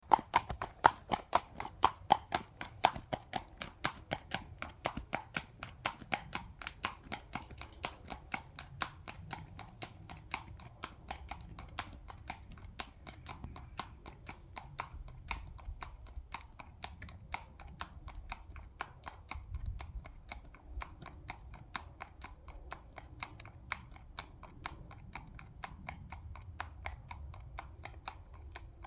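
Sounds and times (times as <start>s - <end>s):
horse walking on road: 0.0s - 28.8s.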